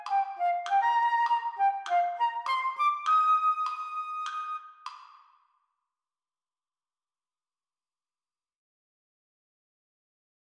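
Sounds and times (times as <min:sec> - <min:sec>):
flute playing at a slower tempo: 0:00.0 - 0:04.8.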